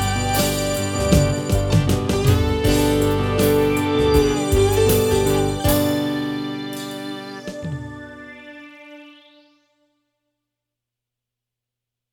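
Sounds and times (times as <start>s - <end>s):
Yamaha DGX 630 digital piano G octave: 0.0s - 9.0s.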